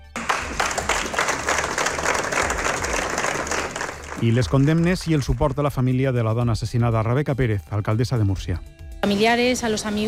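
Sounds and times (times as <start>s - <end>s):
crowd applause ending a minute of silence: 0.0s - 5.7s
speech: 4.2s - 10.0s.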